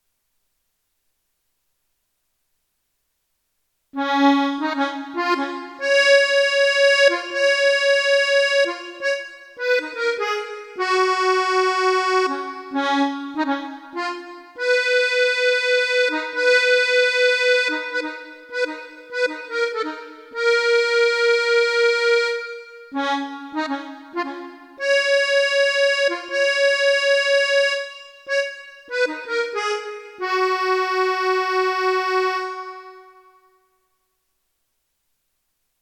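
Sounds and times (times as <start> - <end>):
monophonic melody: 4.0 - 33.6.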